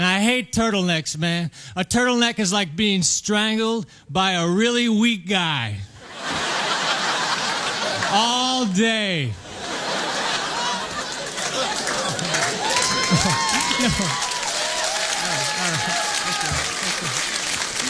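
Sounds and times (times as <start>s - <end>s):
speech: 0.2s - 6.5s, 8.1s - 9.4s, 13.1s - 14.3s
laughter: 6.0s - 8.4s, 9.4s - 17.8s
audience applause: 9.8s - 17.8s.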